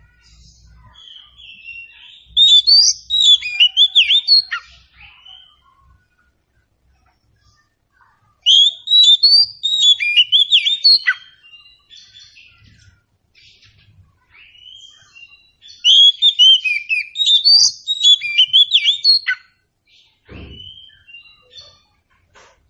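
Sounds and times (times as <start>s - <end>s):
Oriental magpie-robin singing: 1.0s - 5.7s, 8.4s - 12.2s, 14.4s - 19.5s, 20.4s - 21.7s.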